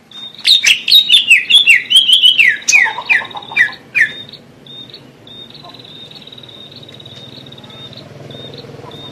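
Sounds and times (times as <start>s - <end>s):
greater green leafbird singing: 0.0s - 9.0s.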